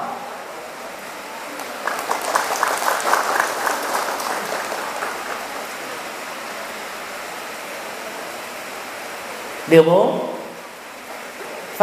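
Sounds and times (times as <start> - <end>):
group applause: 1.4 - 7.1
speech: 9.7 - 10.3.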